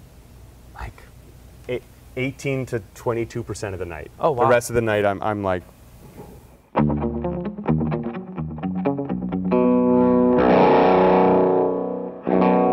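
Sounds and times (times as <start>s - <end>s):
speech: 1.7s - 5.8s
electric guitar played with distortion gain at lower volume: 6.8s - 12.7s.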